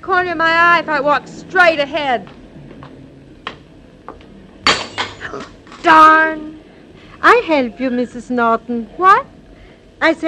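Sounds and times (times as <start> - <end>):
speech: 0.0 - 2.4, 5.2 - 6.5, 7.2 - 9.3, 10.0 - 10.2
glass milk bottles dropping and shattering: 4.6 - 5.4
glass milk bottles clinking: 4.7 - 5.4.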